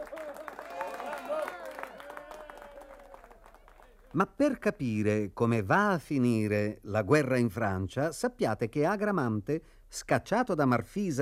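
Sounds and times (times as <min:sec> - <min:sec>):
audience clapping: 0:00.0 - 0:04.4
speech: 0:04.1 - 0:11.2.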